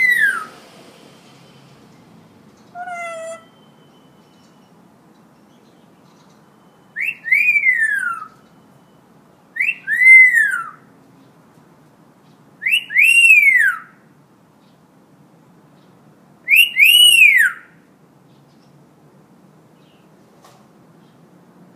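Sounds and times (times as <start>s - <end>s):
Hill myna in full active song: 0.0s - 0.6s, 6.5s - 10.8s, 12.6s - 13.9s, 16.5s - 17.6s.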